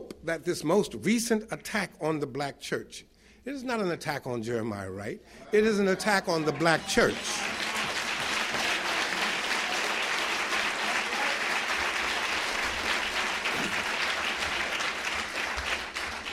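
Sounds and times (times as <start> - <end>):
speech: 0.2 - 7.6
audience applause: 6.0 - 16.3.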